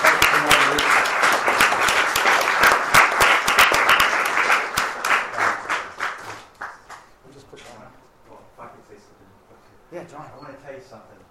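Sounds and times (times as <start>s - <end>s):
crowd applauding: 0.0s - 7.1s.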